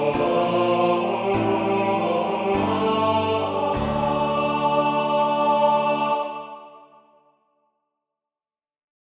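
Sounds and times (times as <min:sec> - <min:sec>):
tenor singing: 0:00.0 - 0:06.9.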